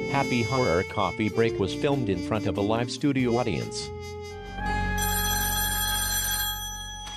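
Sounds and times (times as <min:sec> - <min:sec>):
speech: 0:00.1 - 0:04.2
telephone ringing before answering machine: 0:04.8 - 0:07.1.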